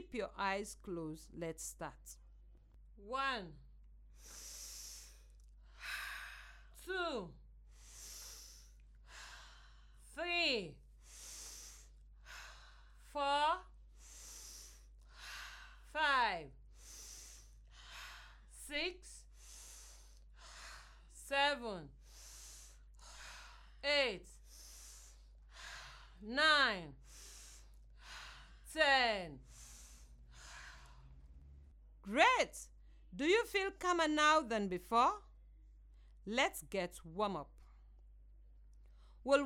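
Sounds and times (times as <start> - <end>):
speech: 0.1 - 2.2, 3.0 - 3.6, 6.9 - 7.4, 10.2 - 10.8, 13.2 - 13.7, 15.9 - 16.6, 18.7 - 19.2, 21.3 - 22.0, 23.8 - 24.3, 26.2 - 27.0, 28.7 - 29.5, 32.0 - 35.3, 36.2 - 37.5, 39.2 - 39.4
slow guided breathing in through the nose and out through the mouth: 4.1 - 6.9, 7.6 - 10.2, 10.8 - 26.3, 27.0 - 31.8.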